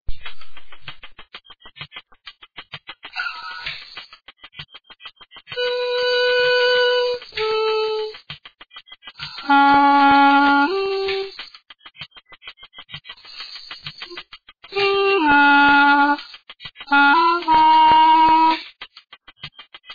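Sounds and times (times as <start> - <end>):
blowing: 5.6 - 8.2, 9.3 - 11.4, 14.0 - 18.6.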